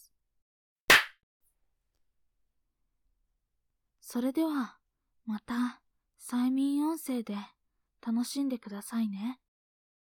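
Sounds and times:
hand clap: 0.9 - 1.1
speech: 4.1 - 9.4.

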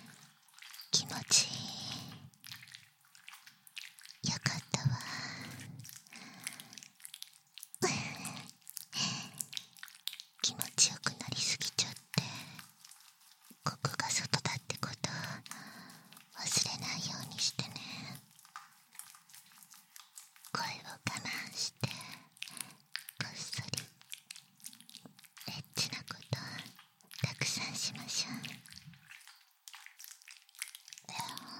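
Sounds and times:
ear licking recorded with binaural microphone: 0.0 - 31.5.

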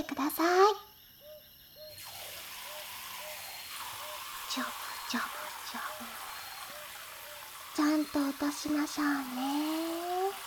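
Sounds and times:
faint repeated chirps: 0.0 - 10.4
speech: 0.1 - 0.8, 4.6 - 5.9, 7.8 - 9.9
hot water pouring to rinse: 1.9 - 10.4.

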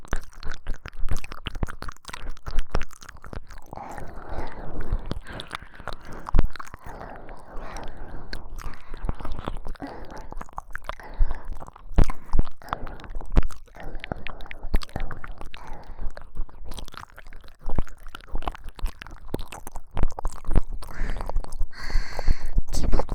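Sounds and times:
binaural ear licking sounds: 0.0 - 23.1
person whispering: 20.8 - 23.1.

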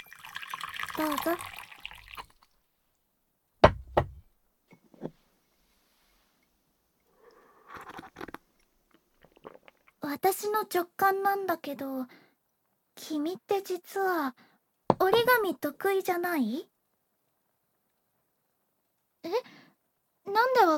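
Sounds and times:
cup being set down with clinks: 0.0 - 2.4, 3.6 - 4.2
warm tea being poured: 0.0 - 2.5, 3.7 - 4.2
speech: 1.0 - 1.6, 10.3 - 12.2, 13.1 - 14.4, 15.0 - 16.7, 19.2 - 19.5, 20.3 - 20.7.

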